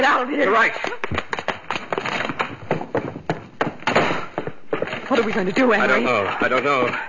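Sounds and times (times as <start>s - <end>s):
speech: 0.2s - 1.3s, 5.1s - 7.0s
bottle knocked off table onto floor: 1.1s - 5.2s.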